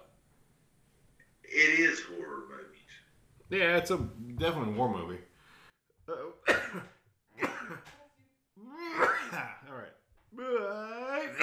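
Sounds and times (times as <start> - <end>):
speech: 1.5 - 2.8, 3.5 - 5.3, 6.1 - 6.9
sneeze: 8.8 - 9.6, 11.2 - 11.4.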